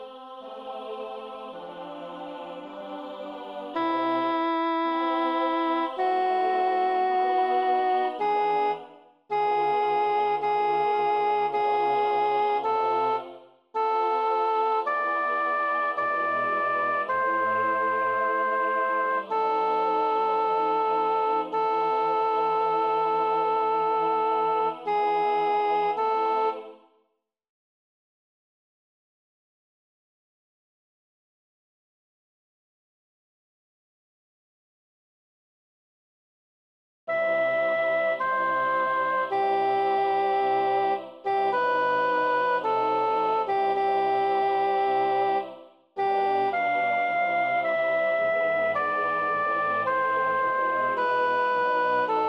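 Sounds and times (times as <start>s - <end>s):
midi sacred music: 0.5s - 26.8s, 37.2s - 52.2s.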